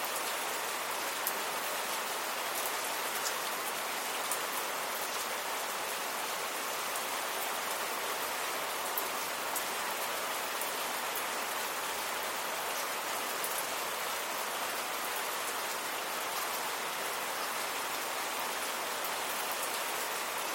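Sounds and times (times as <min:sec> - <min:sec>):
rain on a window: 0:00.0 - 0:20.5.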